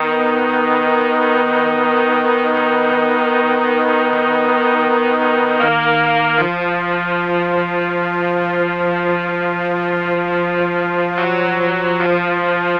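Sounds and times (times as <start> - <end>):
horns intro: 0.0 - 12.7.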